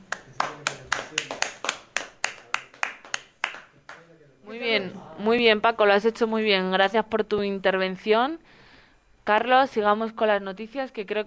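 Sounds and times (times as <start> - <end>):
hand clapping: 0.0 - 4.1
speech: 4.8 - 8.6, 9.3 - 11.2.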